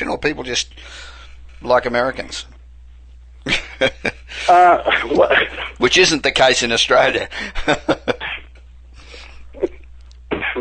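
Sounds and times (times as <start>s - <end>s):
speech: 0.0s - 2.6s, 3.4s - 8.2s
person coughing: 4.5s - 5.8s.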